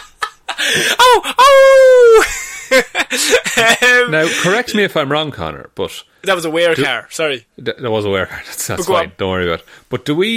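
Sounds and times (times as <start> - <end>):
speech: 0.7 - 10.3
voice imitating a ghostly wail: 1.0 - 2.2.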